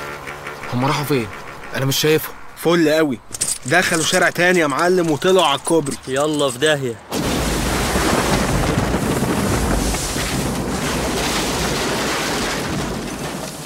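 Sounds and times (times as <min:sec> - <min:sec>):
gusty wind rumble: 0:00.4 - 0:05.7, 0:07.1 - 0:13.6
speech: 0:00.7 - 0:07.3
sea water churning as people fall into the sea from a bridge: 0:07.1 - 0:13.6.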